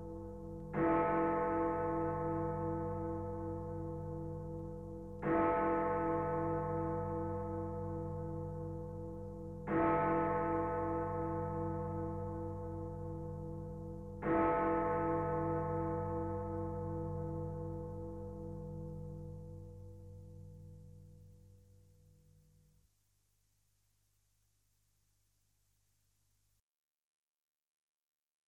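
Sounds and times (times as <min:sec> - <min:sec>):
Big Ben clock tower bell in London chiming: 0:00.0 - 0:19.3.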